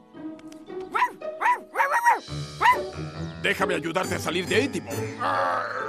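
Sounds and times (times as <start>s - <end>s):
dog barking: 0.9s - 2.8s
speech: 3.4s - 5.8s.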